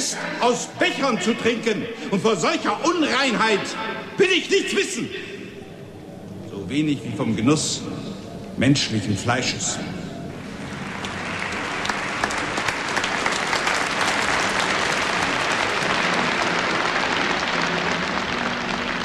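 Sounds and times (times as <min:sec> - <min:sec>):
speech: 0:00.1 - 0:05.4, 0:06.7 - 0:10.0
delegates' standing ovation applause in an audio drama: 0:10.4 - 0:19.0.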